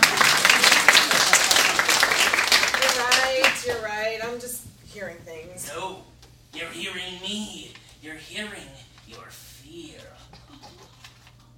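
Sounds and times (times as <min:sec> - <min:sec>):
crowd applauding: 0:00.0 - 0:03.9
speech: 0:05.0 - 0:10.8.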